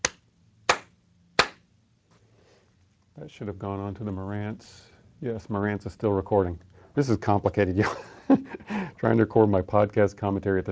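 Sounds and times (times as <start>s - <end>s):
sharp hand claps made to sync a recording: 0.0s - 1.6s
speech: 3.2s - 10.7s.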